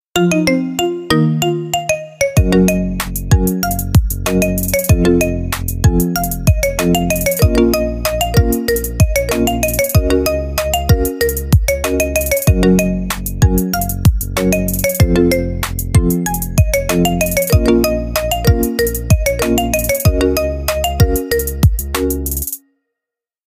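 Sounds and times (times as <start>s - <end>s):
marimba remix ringtone: 0.2s - 22.5s.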